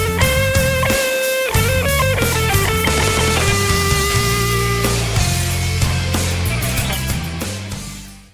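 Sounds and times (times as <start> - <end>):
solo guitar: 0.0 - 8.1.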